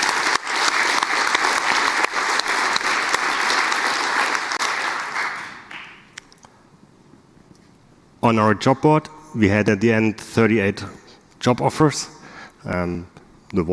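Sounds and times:
audience applause: 0.0 - 6.2
speech: 8.2 - 13.7.

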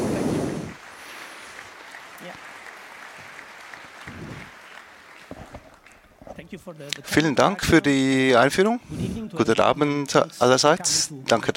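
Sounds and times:
audience applause: 0.0 - 6.2
speech: 6.5 - 11.5.

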